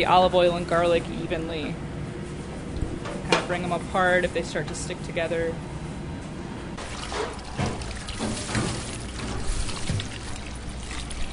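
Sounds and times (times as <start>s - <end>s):
speech: 0.0s - 1.9s, 3.5s - 5.7s
running water rinsing tomatoes: 6.8s - 11.3s.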